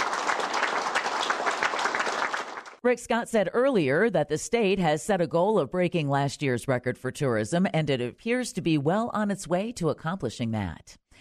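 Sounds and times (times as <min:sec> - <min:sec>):
audience applause: 0:00.0 - 0:02.8
speech: 0:02.8 - 0:11.0.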